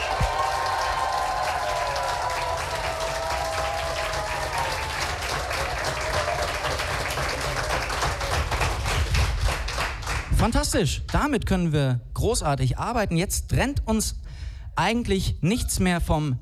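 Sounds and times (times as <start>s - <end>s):
people cheering: 0.0s - 9.1s
audience applauding at a competition event: 0.0s - 10.3s
speech: 10.4s - 14.2s, 14.8s - 16.4s.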